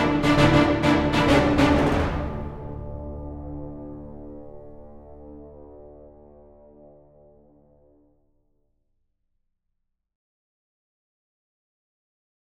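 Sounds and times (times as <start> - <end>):
orchestral music: 0.0 - 5.8.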